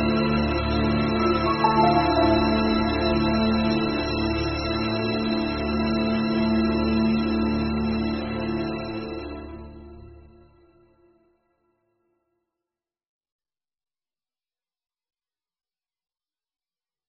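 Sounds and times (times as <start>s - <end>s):
piano: 0.0s - 9.2s
violin: 0.0s - 11.2s.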